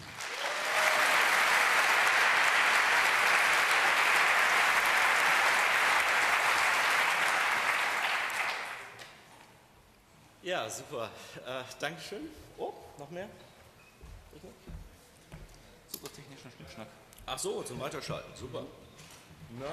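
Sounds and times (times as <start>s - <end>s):
audience applause: 0.0s - 9.0s
speech: 10.5s - 13.5s, 16.4s - 18.8s, 19.5s - 19.7s.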